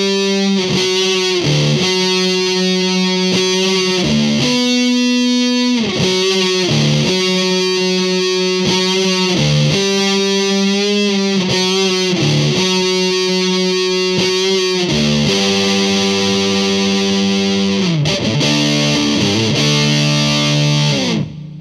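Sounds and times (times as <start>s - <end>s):
fuzz pedal guitar with op amp circuit: 0.0s - 21.5s.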